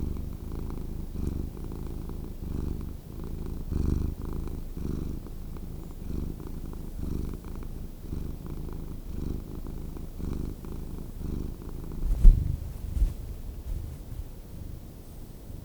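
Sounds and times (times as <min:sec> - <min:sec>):
cat purring: 0:00.0 - 0:15.6
soft bumps: 0:11.9 - 0:14.5.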